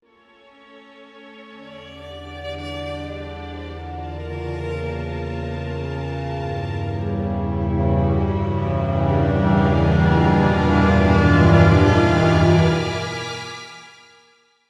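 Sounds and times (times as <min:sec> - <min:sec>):
tension building music: 0:02.4 - 0:13.7.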